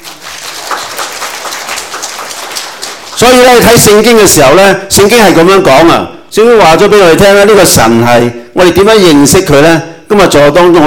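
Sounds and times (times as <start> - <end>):
audience applause: 0.0 - 3.6
speech: 3.2 - 10.8.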